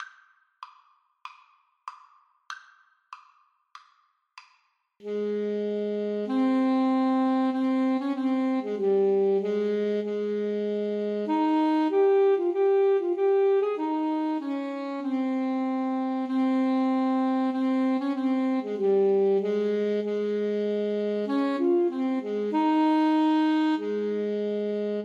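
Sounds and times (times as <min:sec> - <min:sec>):
alto saxophone duet: 0:05.0 - 0:25.0.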